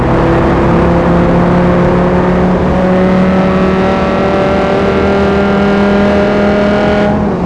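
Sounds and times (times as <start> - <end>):
vehicles: 0.0 - 7.4.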